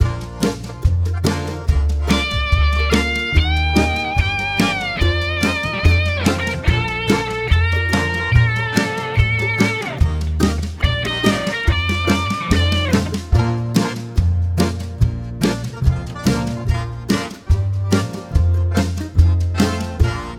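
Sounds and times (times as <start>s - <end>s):
B flat semiquavers: 0.0s - 20.3s.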